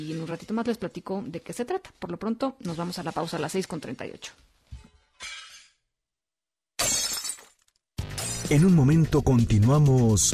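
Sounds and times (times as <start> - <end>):
speech: 0.0 - 4.5, 8.5 - 10.3
glass breaking: 6.8 - 7.8.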